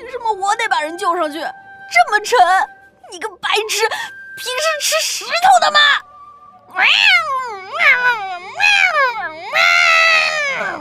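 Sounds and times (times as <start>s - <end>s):
speech: 0.3s - 6.0s, 6.8s - 10.8s
cat meowing: 6.7s - 10.8s.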